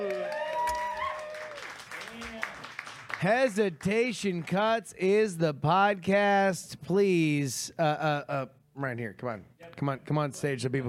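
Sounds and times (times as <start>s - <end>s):
whooping and cheering voices: 0.0s - 2.5s
audience applauding: 0.0s - 4.6s
speech: 3.2s - 10.8s.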